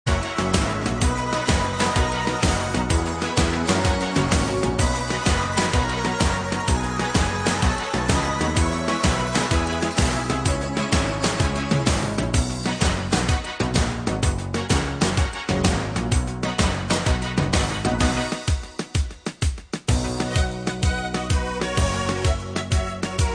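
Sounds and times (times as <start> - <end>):
instrumental music: 0.1 - 23.3.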